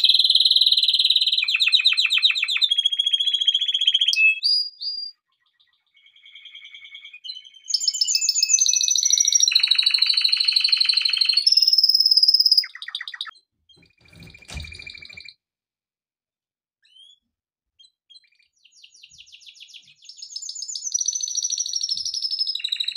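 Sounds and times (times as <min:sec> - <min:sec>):
canary song: 0:00.0 - 0:15.3, 0:17.8 - 0:22.9
dull thump: 0:14.0 - 0:15.1.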